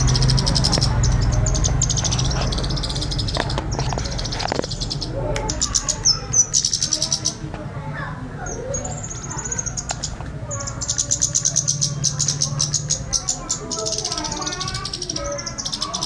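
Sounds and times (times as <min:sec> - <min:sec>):
scarlet-headed flowerpecker ticking: 0:00.0 - 0:07.8, 0:08.4 - 0:16.0.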